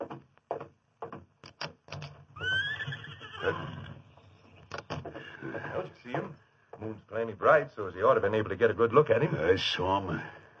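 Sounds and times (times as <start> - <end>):
horse neighing: 2.4 - 4.3
speech: 3.4 - 3.8, 6.8 - 10.4.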